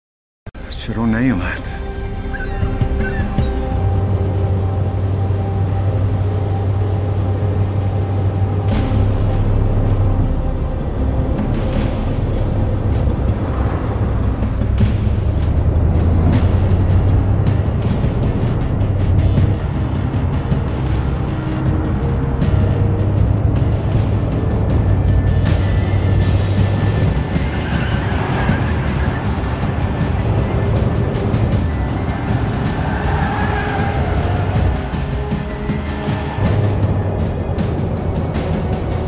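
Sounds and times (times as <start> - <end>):
speech: 0.8 - 1.9
long low ship horn tones of a ship getting ready to depart: 1.8 - 39.0
bird-like calls: 2.2 - 3.8.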